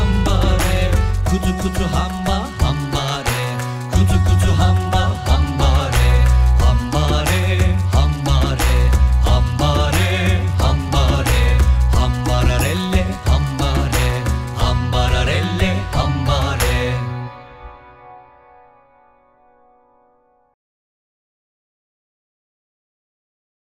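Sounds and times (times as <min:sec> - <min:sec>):
body percussion rhythm game: 0:00.0 - 0:17.0.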